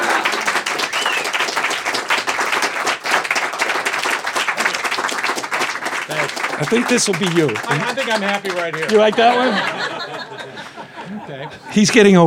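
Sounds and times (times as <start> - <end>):
laughter: 0.0 - 1.2, 6.0 - 12.2
audience applause welcoming a performer: 0.0 - 12.2
speech: 6.6 - 10.0, 11.3 - 12.2.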